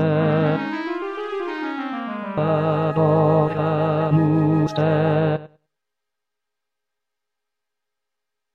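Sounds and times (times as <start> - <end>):
tenor singing: 0.0 - 5.5.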